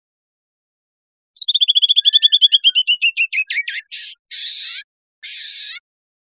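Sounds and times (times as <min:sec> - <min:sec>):
bird trill with buzzy rasps: 0:01.4 - 0:05.8.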